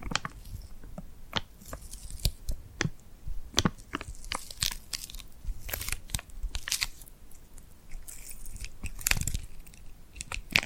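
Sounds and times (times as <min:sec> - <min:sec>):
glued hands pressed together and pulled apart: 0:01.6 - 0:02.9, 0:03.6 - 0:07.1, 0:07.9 - 0:10.6.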